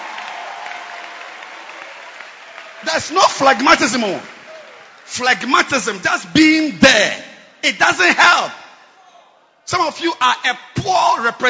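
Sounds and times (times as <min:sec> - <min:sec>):
audience clapping hands: 0:00.0 - 0:05.7
speech: 0:02.8 - 0:04.4, 0:05.1 - 0:08.6, 0:09.7 - 0:11.4.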